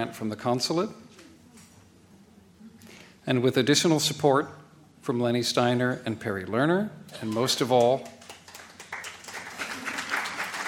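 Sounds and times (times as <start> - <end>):
speech: 0.0 - 1.0, 3.2 - 8.2
audience applause at a panel discussion event: 7.3 - 10.6.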